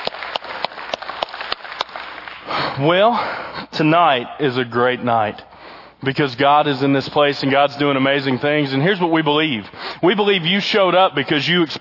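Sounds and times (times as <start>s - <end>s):
audience clapping at an evening church celebration: 0.0s - 2.8s
speech: 2.5s - 11.7s.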